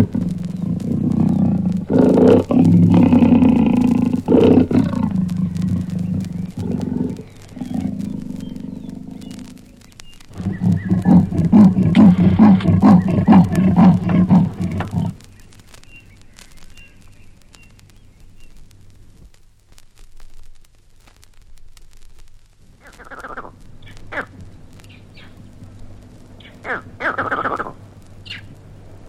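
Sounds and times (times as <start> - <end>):
animal giving deep pulsed rumbling roars and growls: 0.0 - 15.2.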